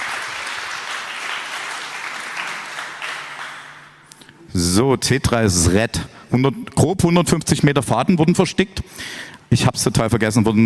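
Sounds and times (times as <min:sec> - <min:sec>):
applause: 0:00.0 - 0:04.1
speech: 0:04.6 - 0:10.6.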